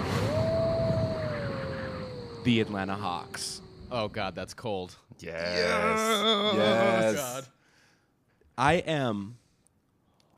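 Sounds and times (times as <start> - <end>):
howling wind: 0.0 - 4.8
speech: 2.4 - 7.6, 8.6 - 9.4.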